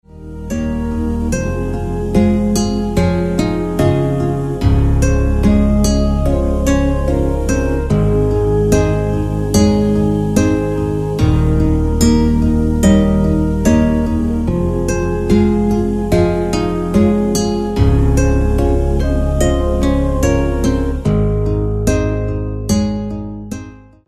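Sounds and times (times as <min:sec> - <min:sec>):
Hawaiian guitar: 0:00.0 - 0:24.0.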